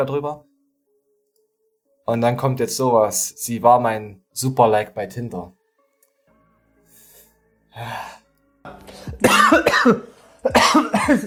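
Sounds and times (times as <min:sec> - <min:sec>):
speech: 0:00.0 - 0:00.5, 0:02.1 - 0:05.6, 0:07.8 - 0:08.2, 0:09.0 - 0:11.2
cough: 0:09.2 - 0:11.2.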